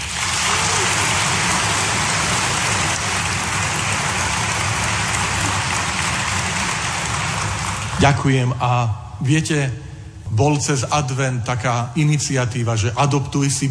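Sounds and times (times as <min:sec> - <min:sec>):
applause for priests: 0:00.0 - 0:08.4
speech: 0:08.0 - 0:13.6.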